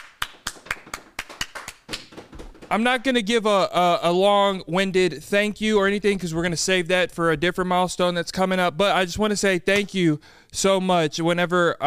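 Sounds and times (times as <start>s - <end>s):
applause: 0.0s - 2.7s
speech: 2.7s - 11.8s.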